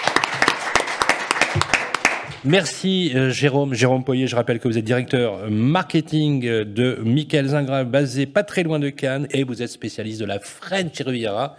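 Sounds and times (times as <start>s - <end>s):
audience applause: 0.0s - 2.4s
speech: 2.4s - 11.5s.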